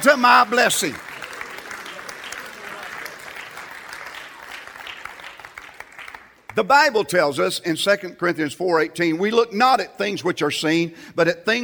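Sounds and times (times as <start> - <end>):
speech: 0.0 - 1.1, 6.6 - 11.6
crowd clapping hands: 0.0 - 6.7.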